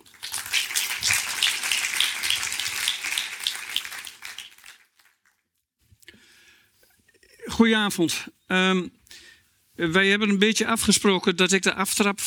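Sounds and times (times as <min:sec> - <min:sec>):
audience applause: 0:00.0 - 0:05.4
speech: 0:07.6 - 0:09.0, 0:09.8 - 0:12.2.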